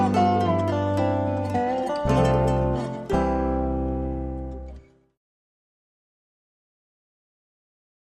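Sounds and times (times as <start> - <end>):
folk ballad: 0.0 - 5.0.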